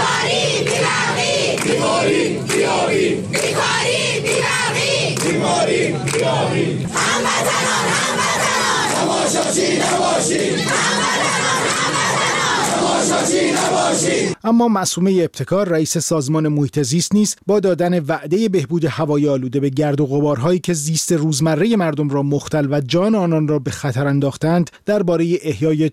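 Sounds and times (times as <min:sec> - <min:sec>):
crowd of protesters shouting and chanting in the street: 0:00.0 - 0:14.4
speech: 0:13.1 - 0:25.9.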